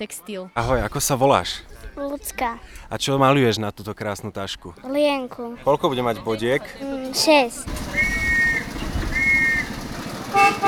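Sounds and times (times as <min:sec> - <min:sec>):
speech: 0:00.0 - 0:08.3
small forest railway train engine of the Katarínka forest railway: 0:06.4 - 0:10.6.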